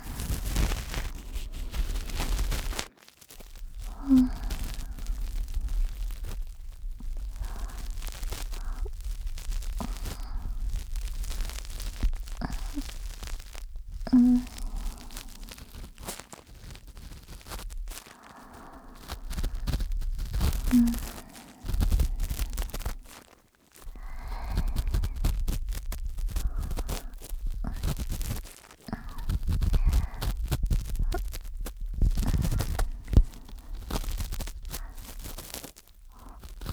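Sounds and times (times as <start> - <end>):
ASMR ear cleaning sounds in the left ear for sleep: 0.0 - 36.7.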